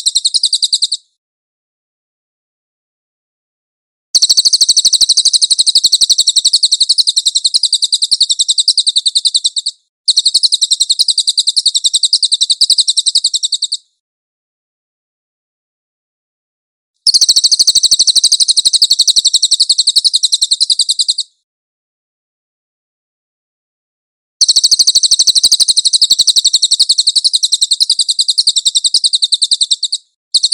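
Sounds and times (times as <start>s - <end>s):
cililin trilling: 0.0s - 1.0s, 4.2s - 13.9s, 17.1s - 21.3s, 24.4s - 30.5s.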